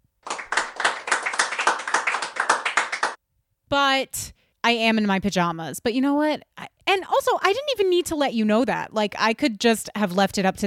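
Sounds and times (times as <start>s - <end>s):
clapping: 0.2s - 3.2s
speech: 3.7s - 10.6s.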